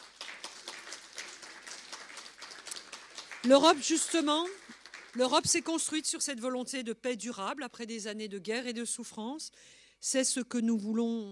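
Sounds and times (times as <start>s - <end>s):
audience applause: 0.0s - 5.8s
speech: 3.4s - 11.3s.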